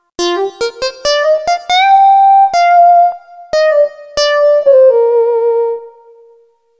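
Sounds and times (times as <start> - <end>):
electronic music: 0.0 - 5.9.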